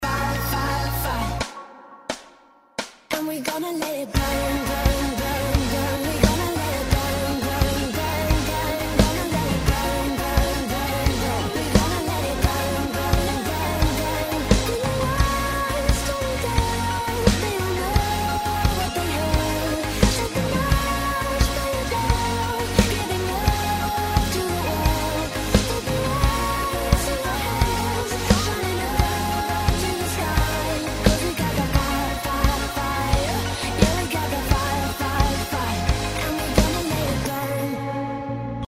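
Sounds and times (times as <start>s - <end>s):
choir singing with music: 0.0s - 38.6s.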